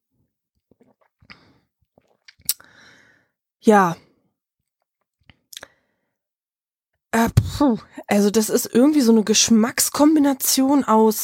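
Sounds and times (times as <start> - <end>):
mouth and swallowing noises while sipping sweet malt beer: 0.6 - 2.7
slurp of sweet malt beer: 0.7 - 2.7
breathy exhale: 2.6 - 3.3
speech: 3.6 - 4.0, 7.6 - 11.2.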